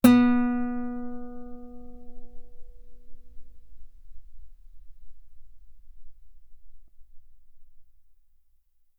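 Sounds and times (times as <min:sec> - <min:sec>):
loud guitar note on the B string: 0:00.0 - 0:04.6.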